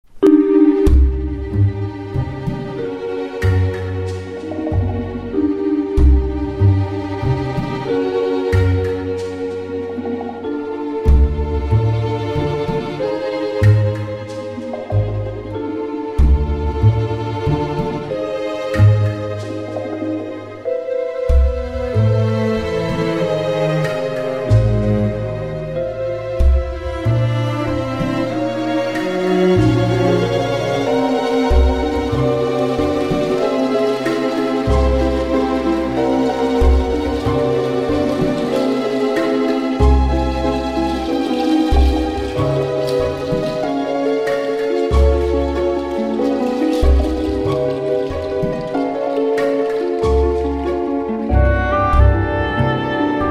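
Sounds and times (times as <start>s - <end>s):
dungeon upper floor music: 0.0s - 53.3s.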